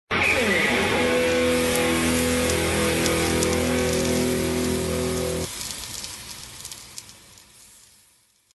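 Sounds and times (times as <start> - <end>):
heavy metal music: 0.1 - 5.5.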